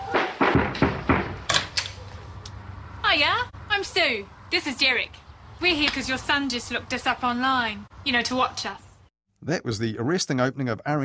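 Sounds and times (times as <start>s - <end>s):
knocking on a door: 0.1s - 1.4s
speech: 3.8s - 11.0s.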